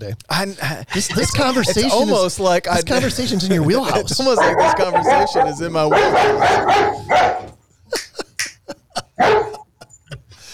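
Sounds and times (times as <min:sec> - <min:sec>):
speech: 0:00.0 - 0:08.0
laughter: 0:00.5 - 0:10.5
German Shepherd barking: 0:03.9 - 0:07.6, 0:09.2 - 0:09.7.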